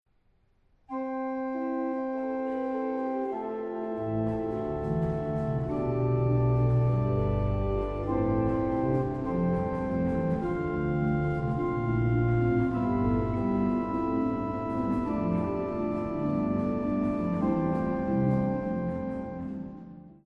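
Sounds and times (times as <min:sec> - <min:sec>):
organ verse on pedal: 0:00.9 - 0:20.2.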